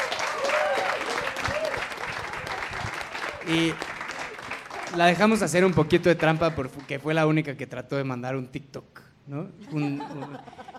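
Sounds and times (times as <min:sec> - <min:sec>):
audience applause: 0:00.0 - 0:07.0
speech: 0:03.4 - 0:03.9, 0:04.9 - 0:10.6
laughter: 0:09.6 - 0:10.7.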